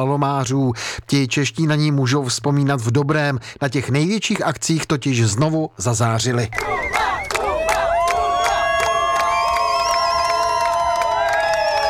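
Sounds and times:
speech: 0.0 - 7.0
teammates cheering and shouting athletes' names: 6.5 - 11.8
long whoops: 6.6 - 11.8.

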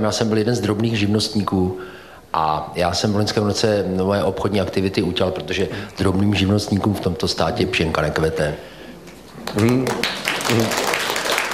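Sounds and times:
speech: 0.0 - 8.7, 9.5 - 10.8
audience applause: 9.4 - 11.5.

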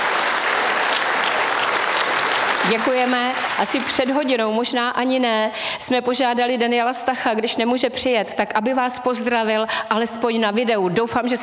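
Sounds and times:
award ceremony audience applauding: 0.0 - 4.4
speech: 2.7 - 11.4.

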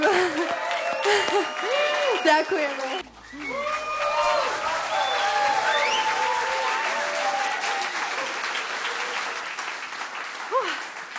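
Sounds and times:
audience applause at the end of a concert: 0.0 - 11.1
audience whistles and cheers at a concert: 0.4 - 9.5
speech: 2.3 - 2.9.

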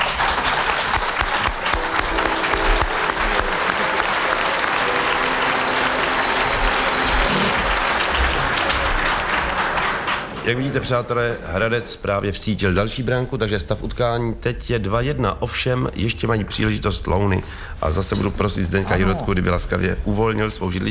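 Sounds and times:
audience applause: 0.0 - 11.3
speech: 10.5 - 20.8.

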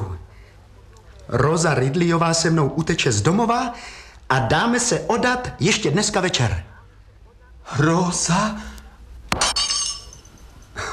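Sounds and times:
speech: 1.3 - 6.7, 7.7 - 8.8
glass crunching: 9.3 - 10.6
glass shattering: 9.3 - 10.6
glass shards tinkling: 9.4 - 10.8.

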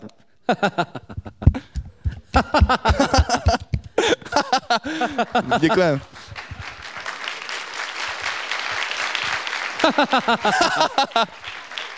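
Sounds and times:
speech: 0.0 - 1.0, 5.2 - 6.1, 9.8 - 11.4
people laughing: 0.5 - 6.6, 9.7 - 11.5
small group clapping: 2.3 - 11.9
people cheering: 5.1 - 11.9.

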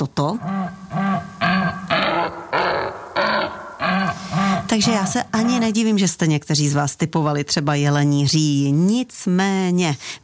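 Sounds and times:
speech: 0.0 - 0.8, 4.8 - 10.2
laughing kookaburra call heavily slowed down: 0.4 - 5.8.

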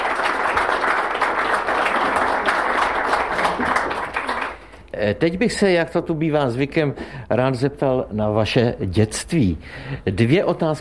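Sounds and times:
applause from many hands: 0.0 - 4.9
speech: 5.0 - 10.8.

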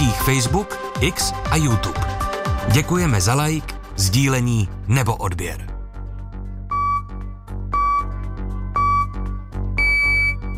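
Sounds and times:
speech: 0.2 - 5.7
Czech Radio Plus time signal pips before the four o'clock news: 6.7 - 10.5.

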